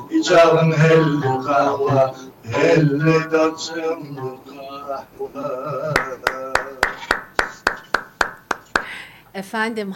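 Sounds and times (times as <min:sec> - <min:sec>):
speech: 0:00.1 - 0:06.3, 0:09.4 - 0:09.9
audience hand claps: 0:05.9 - 0:09.0.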